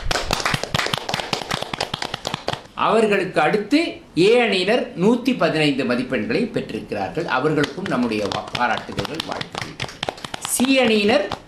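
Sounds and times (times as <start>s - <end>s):
audience clapping for the winning quiz team: 0.0s - 2.7s, 7.6s - 11.4s
speech: 2.8s - 9.6s, 10.6s - 11.4s.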